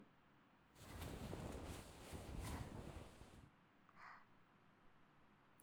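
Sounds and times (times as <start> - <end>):
horse hair brush in the right ear: 0.8 - 3.4.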